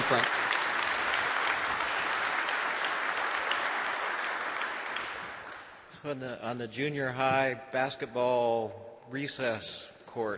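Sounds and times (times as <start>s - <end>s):
applause: 0.0s - 5.9s
speech: 0.1s - 0.5s, 6.0s - 10.3s.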